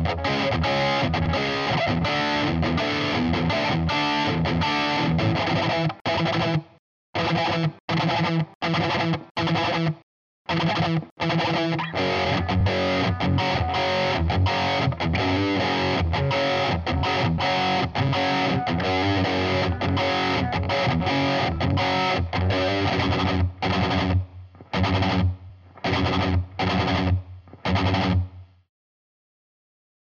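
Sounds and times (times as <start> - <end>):
hard guitar strumming: 0.0 - 28.3.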